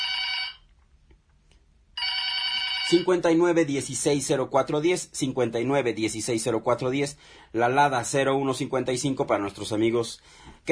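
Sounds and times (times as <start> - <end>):
telephone ringing: 0.0 - 0.7, 2.0 - 3.2
speech: 2.9 - 10.7.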